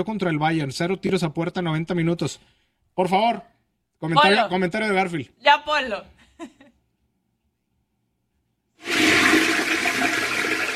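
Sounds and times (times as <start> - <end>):
speech: 0.0 - 6.6
toilet flushing: 8.8 - 10.7.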